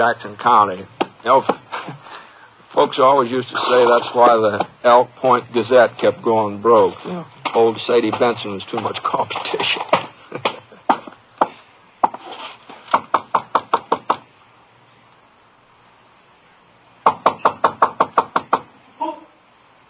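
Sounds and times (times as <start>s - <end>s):
speech: 0.0s - 10.6s
firm knocking on a door: 12.9s - 14.3s, 17.0s - 18.7s.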